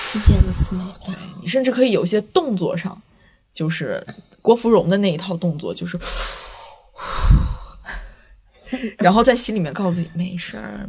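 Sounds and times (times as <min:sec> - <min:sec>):
speech: 0:00.1 - 0:08.0, 0:08.7 - 0:10.8
deep breath with airy sigh: 0:06.0 - 0:09.0.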